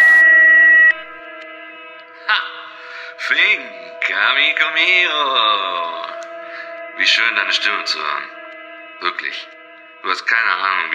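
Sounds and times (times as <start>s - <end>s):
answering machine beep signal: 0.0s - 1.1s
speech: 3.3s - 6.1s, 7.0s - 8.4s, 9.0s - 10.9s.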